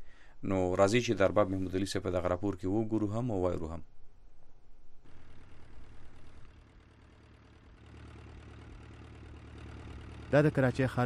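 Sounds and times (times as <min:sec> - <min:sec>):
speech: 0:00.4 - 0:04.0, 0:10.3 - 0:11.0
boat engines heading to a dog island in the Indus near Karachi: 0:05.0 - 0:11.0.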